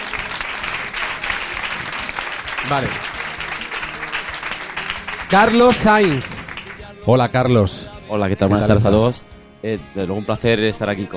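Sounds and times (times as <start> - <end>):
studio audience applause: 0.0 - 6.8
speech: 2.6 - 3.1, 5.3 - 6.3, 7.1 - 11.1.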